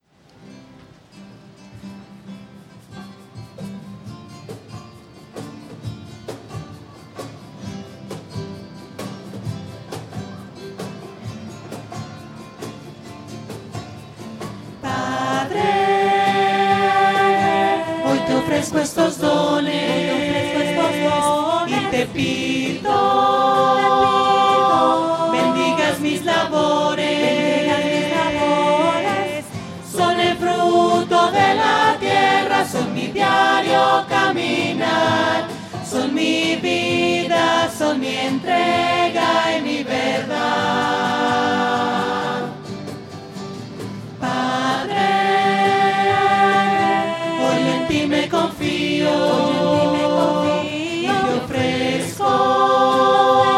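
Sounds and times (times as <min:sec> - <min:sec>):
voices singing: 0:14.6 - 0:43.0, 0:44.1 - 0:53.5.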